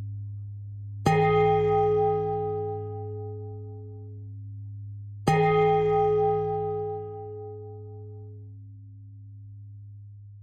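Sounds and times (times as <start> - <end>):
pentatonic bell melody: 1.1 - 4.2, 5.3 - 8.4.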